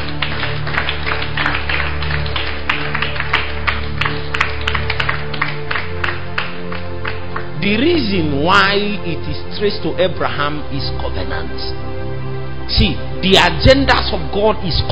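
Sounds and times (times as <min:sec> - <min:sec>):
audience applause: 0:00.0 - 0:07.6
speech: 0:07.6 - 0:12.0, 0:12.7 - 0:14.9.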